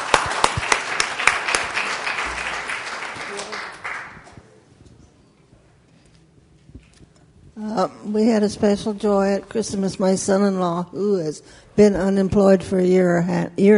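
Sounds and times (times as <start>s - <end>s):
crowd round of applause: 0.0s - 4.5s
speech: 7.8s - 13.7s.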